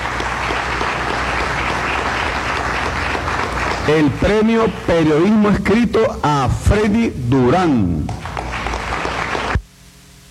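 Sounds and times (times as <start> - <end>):
audience applause: 0.0 - 5.7, 7.4 - 9.6
speech: 3.9 - 8.2.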